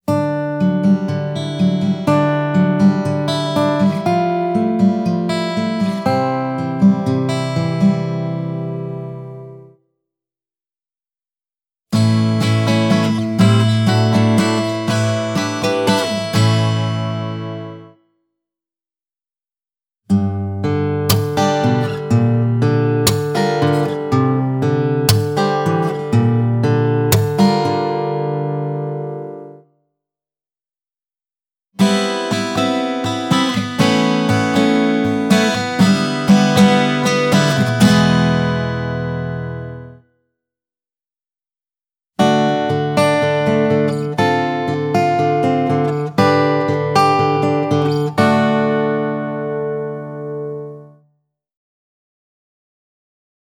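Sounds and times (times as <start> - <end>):
acoustic strumming: 0.1 - 9.8, 11.9 - 18.0, 20.1 - 29.6, 31.8 - 40.0, 42.2 - 51.0.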